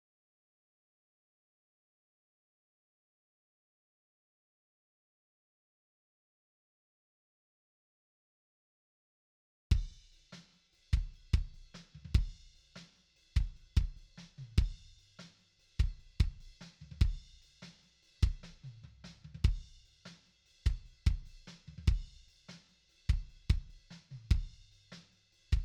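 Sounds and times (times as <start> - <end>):
kick drum: 9.7 - 10.0, 11.0 - 12.4, 13.4 - 14.9, 15.8 - 17.3, 18.2 - 18.6, 19.4 - 19.7, 20.7 - 22.2, 23.1 - 24.6.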